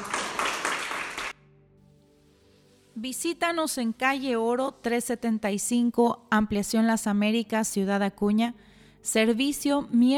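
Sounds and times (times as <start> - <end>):
crowd applause: 0.0 - 1.4
speech: 3.0 - 10.1.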